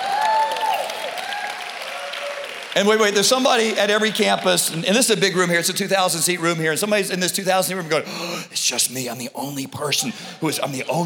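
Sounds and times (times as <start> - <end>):
large church congregation in a 2,000-seat room clapping for people who have been baptized: 0.0 - 6.3
speech: 2.8 - 11.0.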